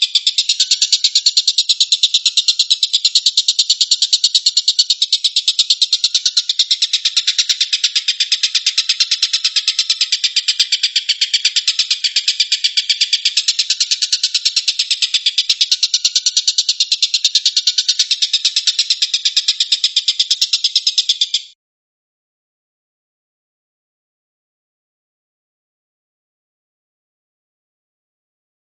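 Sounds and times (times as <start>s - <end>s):
stork-billed kingfisher rattling call: 0.0s - 21.6s.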